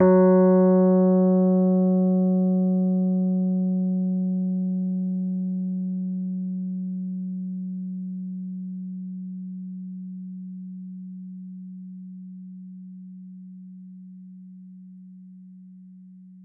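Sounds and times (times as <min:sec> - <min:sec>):
Rhodes Mark II electric piano F#3 note: 0:00.0 - 0:05.8.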